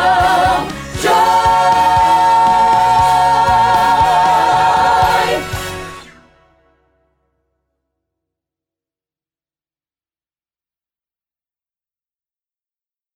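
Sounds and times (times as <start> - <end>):
alto voice singing: 0.0 - 5.9.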